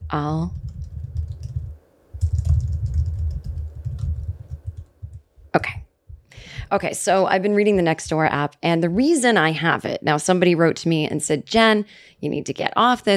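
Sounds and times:
speech: 0.1 - 0.7, 6.7 - 13.1
typing a reply on a keyboard: 0.4 - 5.2.

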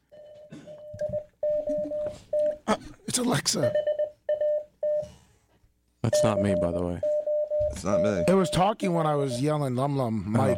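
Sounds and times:
mid-pitched tone beeping like Morse code: 0.1 - 2.6, 3.6 - 5.1, 6.1 - 9.6, 10.3 - 10.5
speech: 2.7 - 3.9, 6.0 - 7.1, 7.7 - 10.5.

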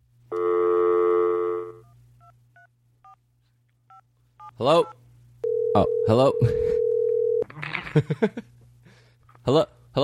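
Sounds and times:
telephone call tone: 0.3 - 2.0, 5.4 - 7.4
speech: 4.6 - 5.0, 5.8 - 6.8, 7.9 - 8.5, 9.5 - 10.0.

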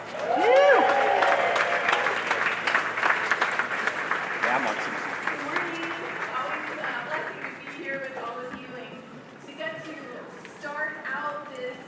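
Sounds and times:
audience applause welcoming a guest at a Hall of Fame event: 0.0 - 8.3.

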